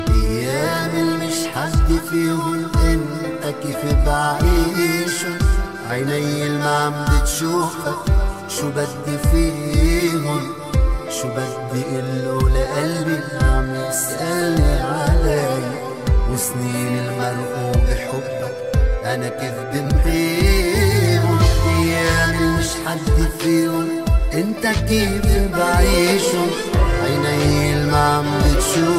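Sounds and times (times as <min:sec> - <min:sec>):
sad Arabic music: 0:00.0 - 0:28.9.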